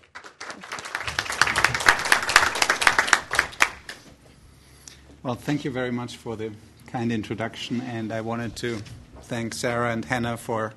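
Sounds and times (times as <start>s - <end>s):
audience applause welcoming a professor: 0.0s - 4.0s
speech: 5.2s - 10.7s.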